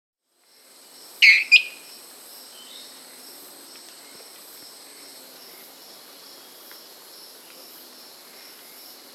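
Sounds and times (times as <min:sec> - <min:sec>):
dwarf tyrant-manakin Tyranneutes stolzmanni singing in the Amazon: 0:01.2 - 0:01.8.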